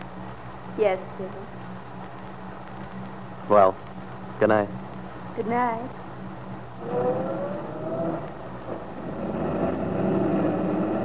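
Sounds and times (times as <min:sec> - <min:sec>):
speech: 0:00.8 - 0:01.7, 0:03.5 - 0:04.8, 0:05.4 - 0:06.0, 0:06.8 - 0:07.4
truck driving off: 0:06.8 - 0:11.0.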